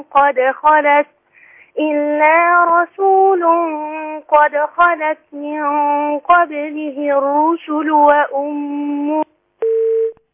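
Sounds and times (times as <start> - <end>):
speech: 0.0 - 1.2, 1.8 - 9.3
telephone busy tone beeps after a phone line is cut off: 9.6 - 10.2.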